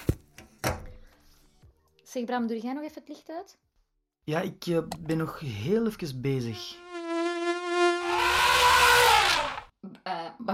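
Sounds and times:
speech: 0:02.1 - 0:06.9
mosquito buzzing: 0:06.5 - 0:09.7.

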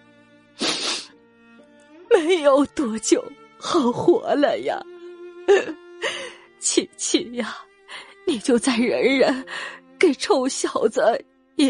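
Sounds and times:
forceful sniffing through the nose: 0:00.6 - 0:01.1
speech: 0:02.2 - 0:04.9, 0:05.5 - 0:11.6.

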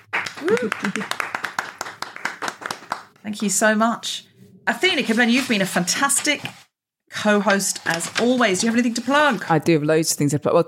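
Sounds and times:
audience applause for a guest: 0:00.0 - 0:03.2
speech: 0:00.4 - 0:01.3, 0:03.2 - 0:06.6, 0:07.2 - 0:10.6.

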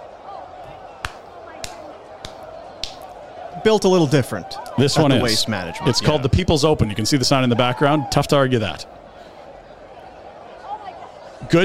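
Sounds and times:
golf clap: 0:01.0 - 0:03.2
speech: 0:03.6 - 0:08.9.

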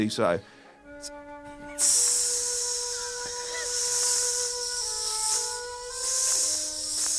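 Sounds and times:
faint tonal hum: 0:00.8 - 0:07.1
voice imitating snake hiss: 0:01.7 - 0:07.1.

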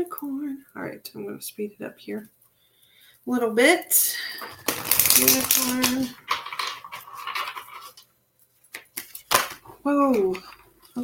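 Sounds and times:
speech: 0:00.0 - 0:02.4, 0:03.2 - 0:06.4, 0:09.8 - 0:11.0
pile of oracle cards rustling and sliding as it is handled and spilled: 0:04.4 - 0:08.0, 0:08.7 - 0:11.0.

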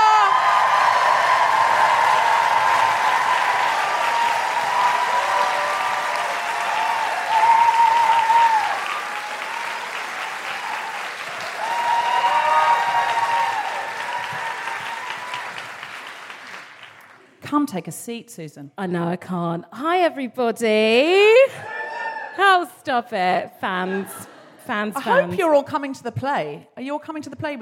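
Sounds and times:
audience applause and cheering at a live comedy show: 0:00.0 - 0:17.3
speech: 0:17.7 - 0:21.7, 0:22.5 - 0:27.6.

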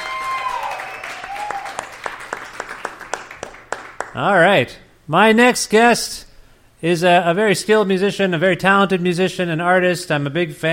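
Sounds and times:
audience applause: 0:00.0 - 0:04.2
speech: 0:04.2 - 0:10.7.

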